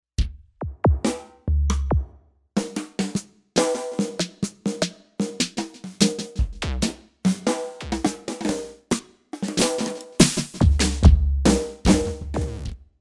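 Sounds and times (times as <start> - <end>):
bass drum: 0.2 - 2.2, 6.4 - 7.0, 10.2 - 12.8
snare drum: 0.6 - 2.0, 2.6 - 12.8.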